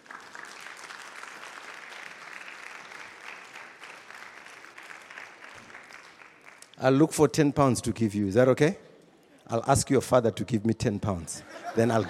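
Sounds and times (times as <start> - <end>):
audience applauding: 0.0 - 6.8
speech: 6.8 - 8.9, 9.5 - 12.0
laughter: 11.4 - 12.0.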